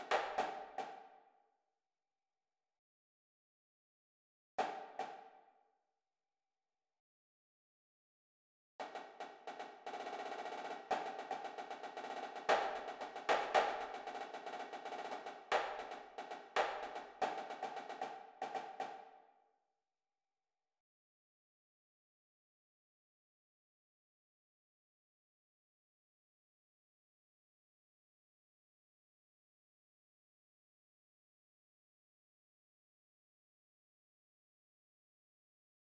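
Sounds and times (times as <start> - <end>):
snare drum: 0.0 - 1.1, 8.8 - 19.1.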